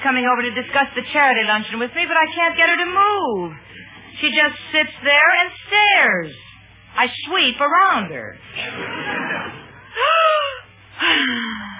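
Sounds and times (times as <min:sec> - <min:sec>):
speech: 0:00.1 - 0:10.4, 0:11.0 - 0:11.6
deep yoga breathing exercises: 0:08.6 - 0:11.7.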